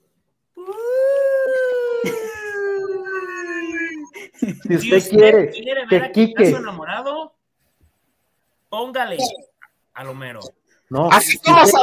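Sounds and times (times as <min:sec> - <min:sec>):
voice imitating an ambulance siren: 0:00.6 - 0:04.2
laughter: 0:01.8 - 0:05.2
speech: 0:04.7 - 0:07.1, 0:09.0 - 0:09.4, 0:10.0 - 0:11.8.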